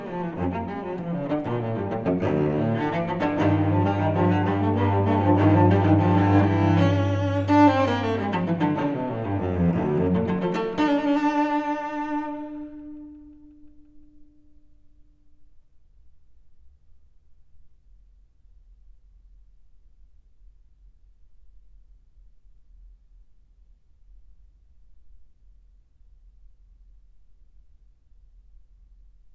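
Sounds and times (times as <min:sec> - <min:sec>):
solo cello suite: 0:00.0 - 0:15.2.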